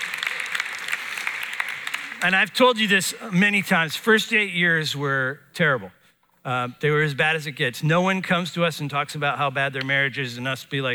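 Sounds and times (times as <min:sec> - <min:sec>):
audience clapping: 0:00.0 - 0:02.9
speech: 0:02.2 - 0:10.9.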